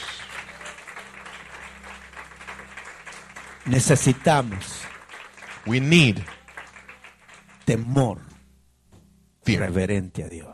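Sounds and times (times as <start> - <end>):
audience applause: 0.0 - 7.7
speech: 3.7 - 4.8, 5.6 - 6.4, 7.7 - 8.3, 9.5 - 10.5.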